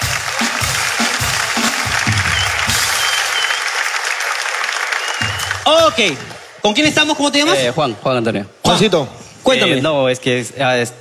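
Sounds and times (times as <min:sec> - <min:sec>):
audience applause: 0:00.0 - 0:06.6
speech: 0:05.6 - 0:10.9.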